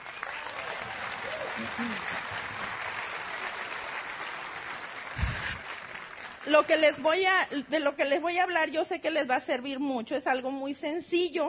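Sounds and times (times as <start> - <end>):
audience applause: 0.0 - 7.6
speech: 1.6 - 2.5, 6.5 - 11.4.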